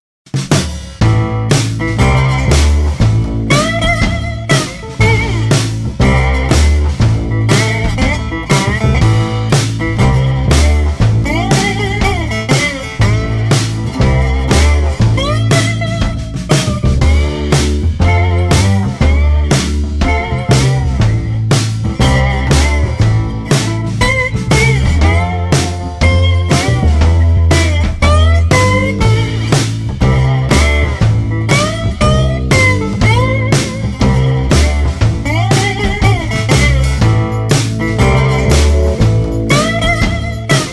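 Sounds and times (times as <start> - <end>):
blues rock slide guitar: 1.0 - 40.7.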